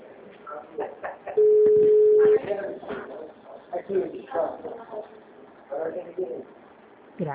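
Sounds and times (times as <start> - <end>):
people talking: 0.0 - 6.5
telephone line tone beep: 1.4 - 2.4.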